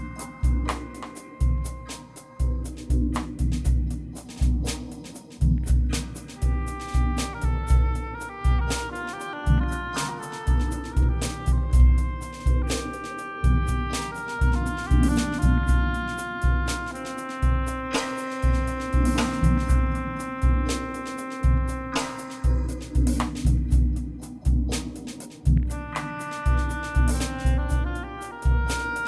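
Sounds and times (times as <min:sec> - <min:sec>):
drums: 0:00.0 - 0:29.0
oboe solo: 0:06.4 - 0:22.7, 0:25.7 - 0:29.0.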